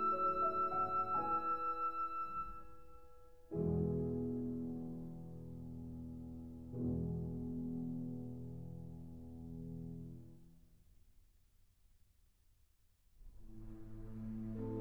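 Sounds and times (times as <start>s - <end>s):
flute and piano lullaby: 0.0s - 8.5s, 13.4s - 14.7s.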